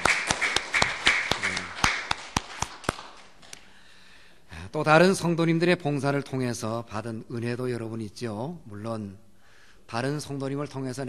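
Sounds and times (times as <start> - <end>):
audience clapping: 0.0 - 3.7
speech: 4.7 - 9.2, 9.9 - 11.0.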